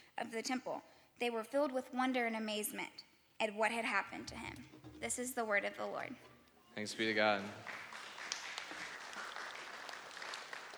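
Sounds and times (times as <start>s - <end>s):
speech: 0.2s - 7.8s
audience clapping: 6.9s - 10.7s.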